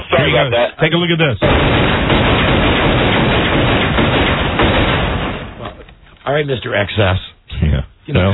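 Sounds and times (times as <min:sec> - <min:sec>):
speech: 0:00.1 - 0:02.1, 0:06.3 - 0:08.3
gunshots fired in rapid succession: 0:01.4 - 0:05.9.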